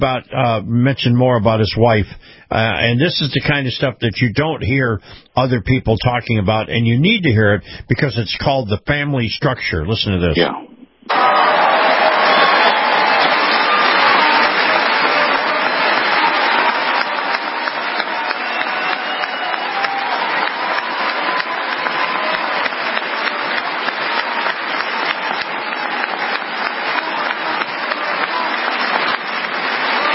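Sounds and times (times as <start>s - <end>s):
speech: 0.0s - 11.4s
crowd applauding: 11.1s - 30.1s.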